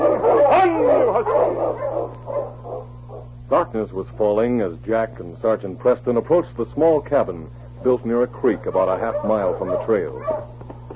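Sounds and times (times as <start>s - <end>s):
several dogs howling and yelping together: 0.0s - 3.3s, 7.8s - 10.6s
steady low hum: 0.0s - 10.9s
speech: 3.7s - 10.6s.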